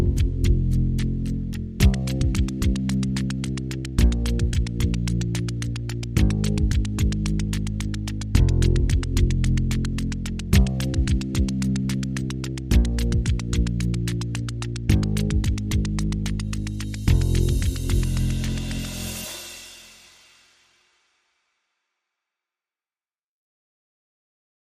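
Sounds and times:
bass: 0.0s - 20.0s
drums: 0.0s - 20.8s
ticking: 0.1s - 19.3s.

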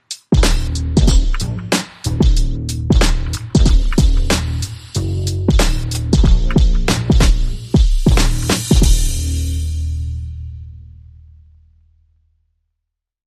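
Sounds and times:
drums: 0.0s - 10.6s
bass: 0.4s - 12.6s.

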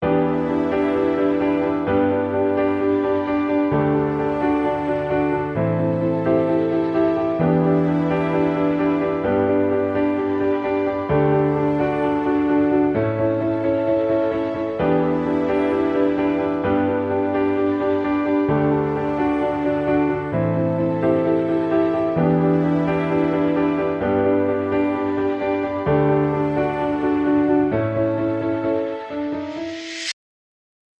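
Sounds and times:
piano: 0.0s - 30.2s.

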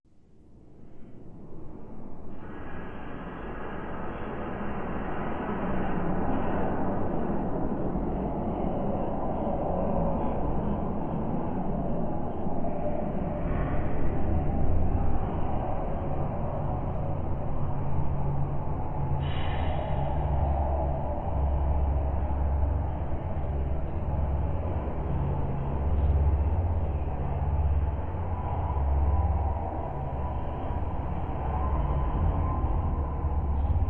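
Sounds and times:
dark delirium ambience: 0.1s - 33.8s.

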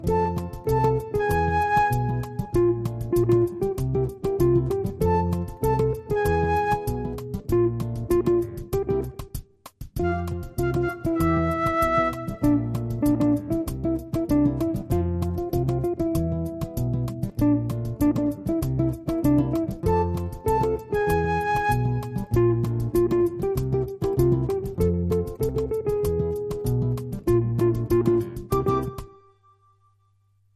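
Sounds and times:
samba groove: 0.0s - 29.3s.

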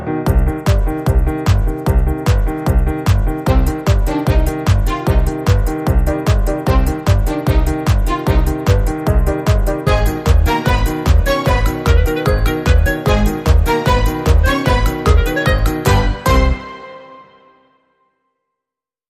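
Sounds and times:
modern percussion: 0.3s - 16.7s.

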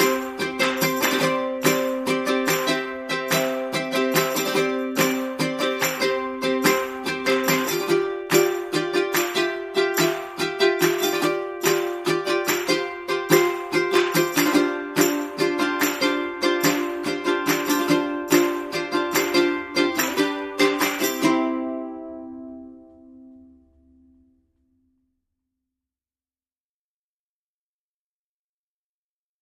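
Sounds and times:
hands clapping: 0.0s - 22.0s
ukulele: 0.0s - 24.3s.

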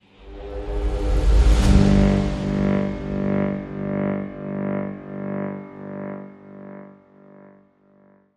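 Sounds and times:
short link sting: 0.6s - 5.3s.

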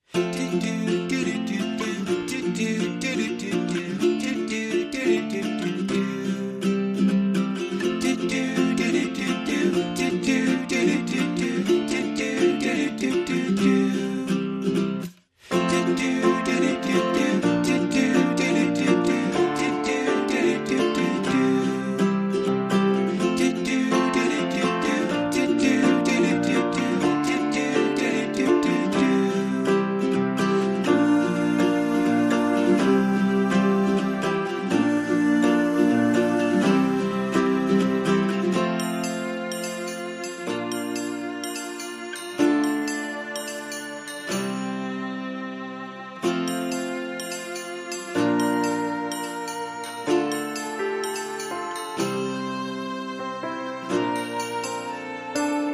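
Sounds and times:
music without drums or bass: 0.0s - 55.7s.

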